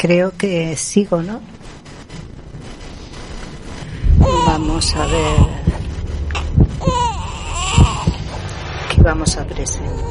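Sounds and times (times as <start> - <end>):
speech: 0.0 - 1.6, 4.2 - 5.6, 9.0 - 10.0
soft low thumps: 1.4 - 10.0
infant crying: 4.2 - 5.6, 6.8 - 8.2, 9.9 - 10.0.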